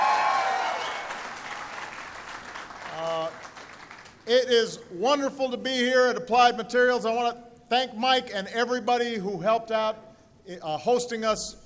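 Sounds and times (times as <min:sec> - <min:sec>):
applause: 0:00.0 - 0:04.3
speech: 0:04.3 - 0:11.6.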